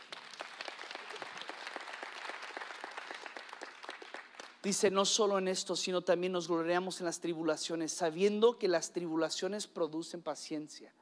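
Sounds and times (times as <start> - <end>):
audience applause: 0.0 - 4.6
speech: 4.6 - 10.9.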